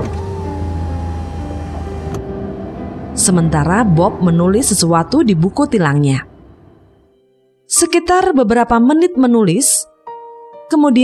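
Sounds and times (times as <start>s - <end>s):
car power window motor whining: 0.0s - 3.1s
low car engine rumble: 0.0s - 6.9s
speech: 3.2s - 6.3s, 7.7s - 9.9s, 10.7s - 11.0s.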